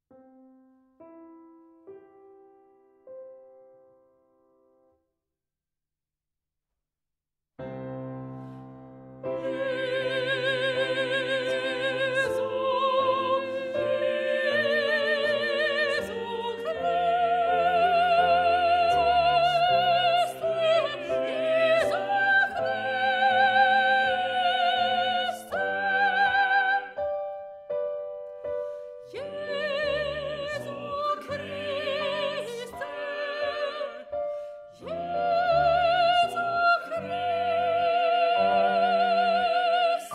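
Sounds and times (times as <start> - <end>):
soprano singing: 9.2 - 40.1.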